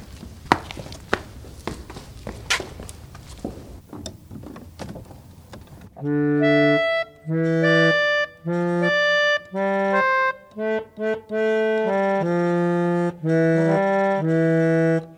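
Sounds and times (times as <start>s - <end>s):
wooden knocks and clicks of foot-pumped organ bellows: 2.5s - 6.0s
church organ with foot-pumped bellows playing sustained chords: 5.9s - 15.1s.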